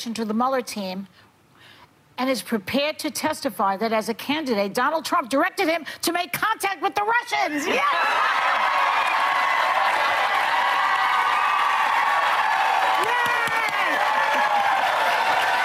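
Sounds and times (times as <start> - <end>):
speech: 0.0 - 1.2, 2.2 - 8.7
people shouting: 7.6 - 15.6
crowd cheering and applauding: 7.8 - 15.6.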